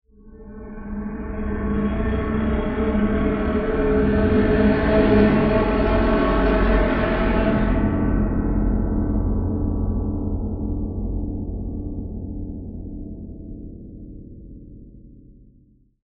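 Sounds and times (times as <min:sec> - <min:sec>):
low horror string transition: 0:00.3 - 0:11.3.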